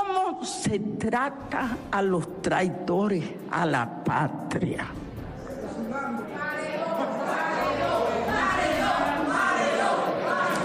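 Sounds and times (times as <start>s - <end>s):
speech: 0.4s - 5.0s
large crowd shouting a chant in unison: 5.5s - 10.6s.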